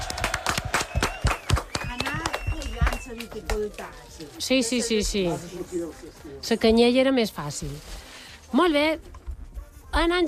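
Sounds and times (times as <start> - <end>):
audience applause: 0.0 - 3.9
speech: 3.7 - 9.2, 10.0 - 10.2.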